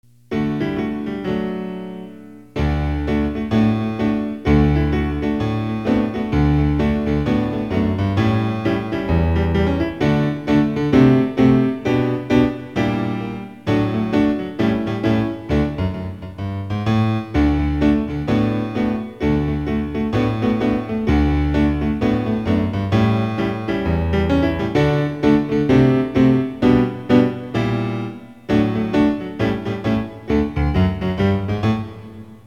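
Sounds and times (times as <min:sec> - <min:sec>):
piano: 0:00.0 - 0:32.4.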